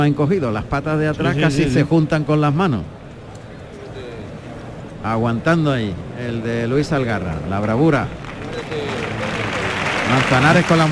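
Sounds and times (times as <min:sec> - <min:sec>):
speech: 0:00.0 - 0:03.0, 0:05.0 - 0:08.9, 0:10.1 - 0:10.8
bullring crowd ovation clapping and cheering: 0:07.6 - 0:10.8.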